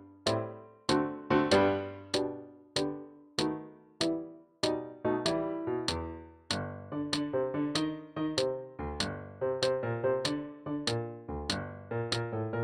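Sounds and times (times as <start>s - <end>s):
instrumental accompaniment for clarinet solo: 0.0s - 12.3s.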